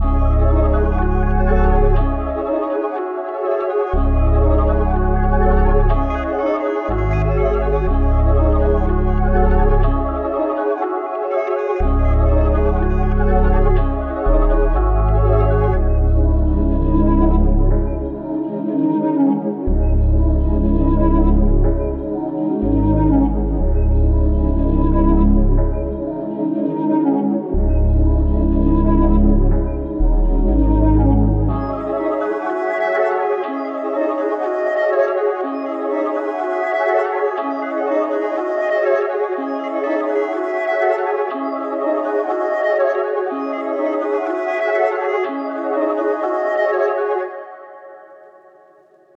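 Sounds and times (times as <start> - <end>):
melodies in C sharp minor: 0.0 - 48.3.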